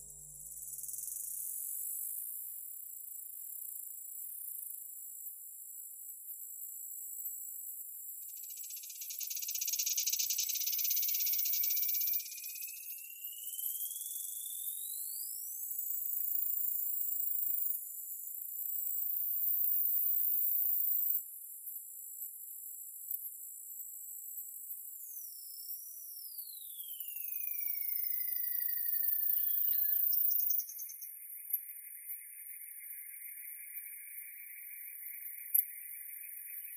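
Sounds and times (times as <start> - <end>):
forest ambience: 2.0 - 36.7.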